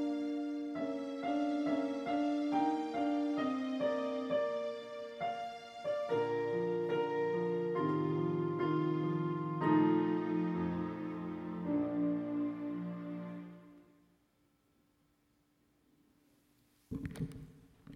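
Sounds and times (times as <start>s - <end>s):
piano concerto with strings: 0.0s - 14.0s.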